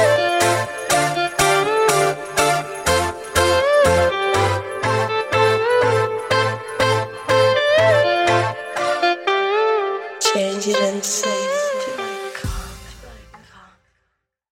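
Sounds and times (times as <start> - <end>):
funk remix music at 126 bpm: 0.0 - 13.5.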